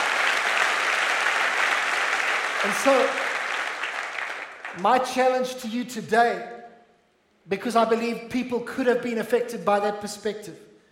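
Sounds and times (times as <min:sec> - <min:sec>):
audience clapping hands: 0:00.0 - 0:05.2
speech: 0:02.6 - 0:03.2, 0:04.8 - 0:06.6, 0:07.5 - 0:10.7.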